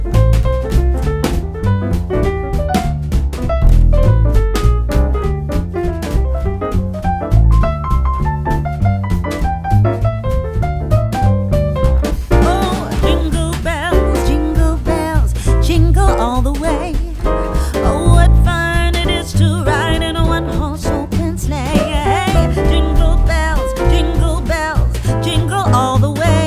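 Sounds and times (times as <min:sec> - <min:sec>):
jazz arrangement of a Christmas song: 0:00.0 - 0:26.4.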